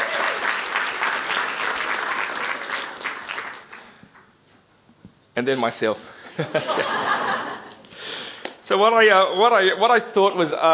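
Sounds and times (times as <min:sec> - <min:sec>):
round of applause: 0:00.0 - 0:04.3
speech: 0:05.4 - 0:10.7
laughter: 0:06.3 - 0:07.9.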